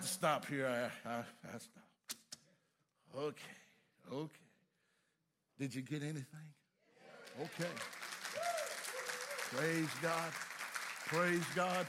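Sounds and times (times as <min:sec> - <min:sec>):
speech: 0:00.2 - 0:01.9, 0:03.1 - 0:04.5, 0:05.6 - 0:06.6, 0:07.4 - 0:08.0, 0:09.5 - 0:10.5, 0:11.1 - 0:11.8
audience clapping: 0:07.1 - 0:11.8.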